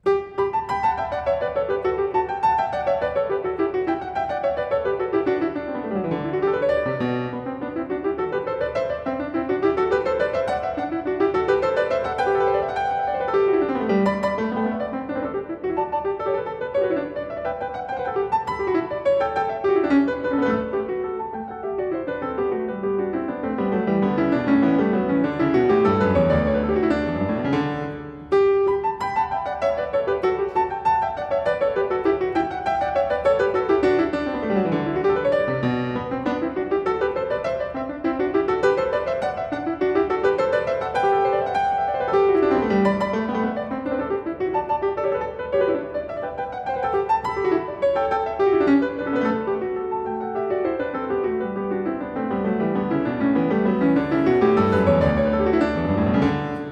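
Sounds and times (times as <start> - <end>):
harpsichord piece for two manuals: 0.0 - 56.6.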